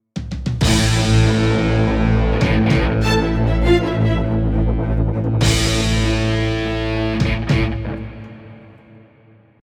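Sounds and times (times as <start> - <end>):
fast boss battle game music: 0.6 - 8.1.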